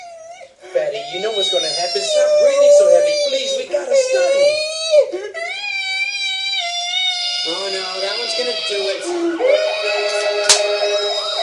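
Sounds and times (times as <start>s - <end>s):
speech: 0.9s - 5.6s, 7.4s - 10.5s
fire alarm going off: 7.6s - 11.4s.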